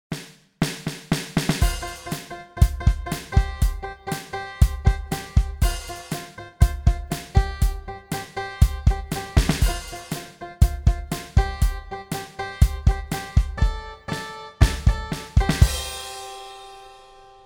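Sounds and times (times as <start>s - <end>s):
music beat: 0.1s - 16.9s.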